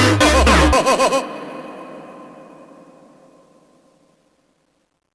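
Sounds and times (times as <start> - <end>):
slowed funk laugh: 0.2 - 1.8.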